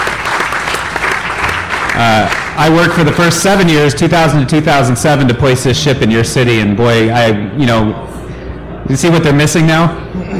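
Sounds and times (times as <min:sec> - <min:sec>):
audience applause: 0:00.0 - 0:02.8
speech: 0:02.0 - 0:08.1, 0:08.9 - 0:10.3.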